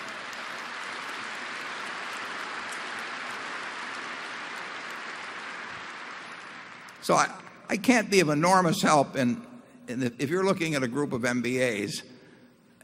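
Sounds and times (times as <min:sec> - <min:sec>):
audience applauding: 0:00.0 - 0:07.4
speech: 0:07.0 - 0:12.1.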